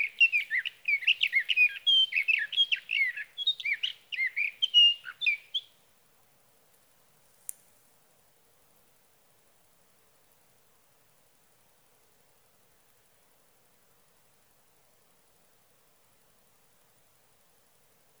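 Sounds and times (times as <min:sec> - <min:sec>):
Sage thrasher singing through the night: 0:00.0 - 0:05.7.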